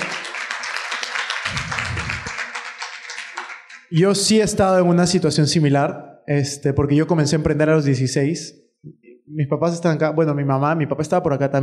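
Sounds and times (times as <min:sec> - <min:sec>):
audience applause: 0:00.0 - 0:03.9
speech: 0:03.9 - 0:11.6.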